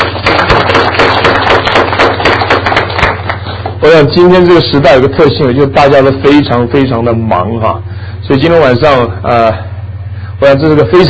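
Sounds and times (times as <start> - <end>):
audience applause: 0.0 - 3.8
speech: 3.8 - 9.7, 10.4 - 11.0.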